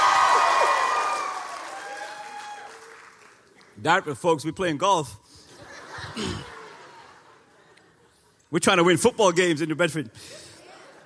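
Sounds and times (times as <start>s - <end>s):
crowd cheering and clapping: 0.0s - 3.8s
speech: 3.8s - 5.4s, 6.2s - 6.5s, 8.5s - 10.5s
laughter: 5.5s - 8.3s, 10.2s - 11.0s.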